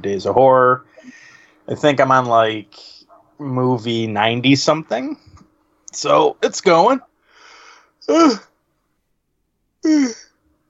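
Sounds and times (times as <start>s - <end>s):
speech: 0.0s - 5.3s, 5.9s - 7.1s, 8.0s - 8.5s, 9.8s - 10.2s
person yawning: 8.0s - 8.5s, 9.8s - 10.3s.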